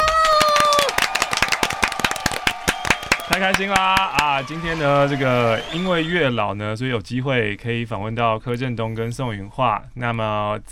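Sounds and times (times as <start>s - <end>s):
applause welcoming guests: 0.0s - 6.1s
speech: 3.3s - 10.7s.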